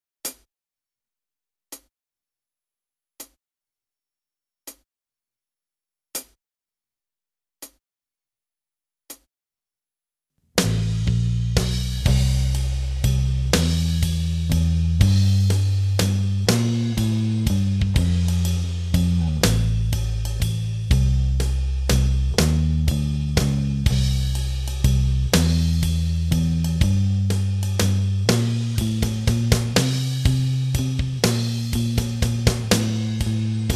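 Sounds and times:
backing track for a solo section: 10.6 - 33.7.

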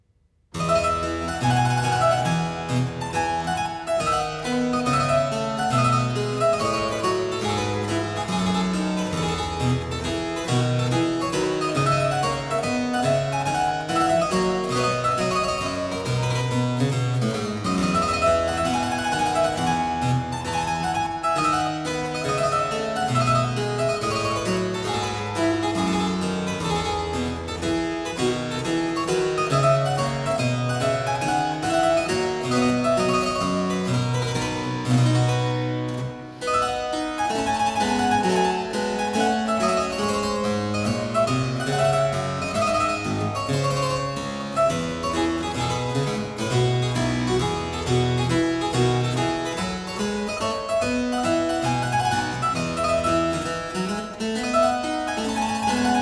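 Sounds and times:
harpsichord piece: 0.6 - 56.0.

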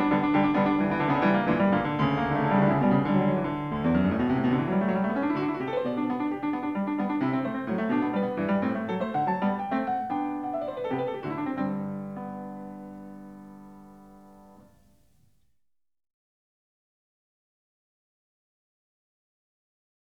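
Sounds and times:
keyboard fugue in G major: 0.0 - 15.2.

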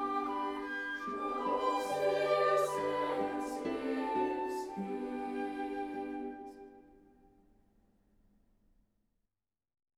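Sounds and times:
chamber ensemble playing: 0.0 - 6.6
choir singing: 0.0 - 7.0.

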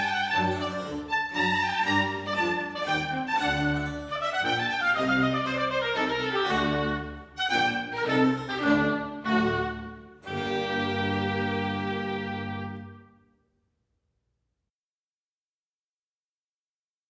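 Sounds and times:
oboe concerto in G minor allegro: 0.0 - 13.2.

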